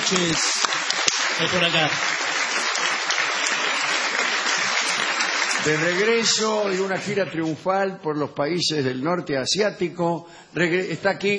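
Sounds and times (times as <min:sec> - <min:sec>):
sustained audience applause and ovation: 0:00.0 - 0:07.5
speech: 0:00.1 - 0:00.8, 0:01.4 - 0:02.3, 0:05.6 - 0:11.3.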